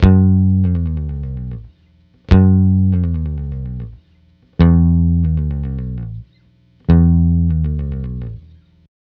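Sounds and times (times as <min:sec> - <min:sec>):
multiple bossa nova guitars at 105 BPM: 0:00.0 - 0:08.6
bass in F sharp: 0:00.0 - 0:08.9.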